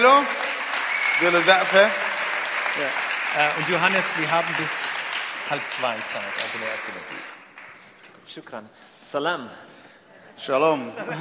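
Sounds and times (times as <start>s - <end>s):
speech: 0.0s - 0.4s, 1.2s - 2.0s, 2.8s - 7.4s, 8.2s - 9.7s, 10.4s - 11.2s
audience applause: 0.0s - 8.0s.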